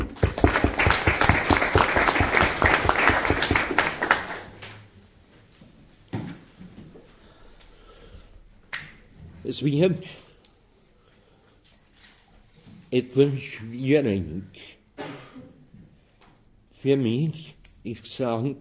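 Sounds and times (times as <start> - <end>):
audience applause: 0.0 - 4.8
speech: 9.5 - 10.2, 12.9 - 14.8, 16.8 - 18.6.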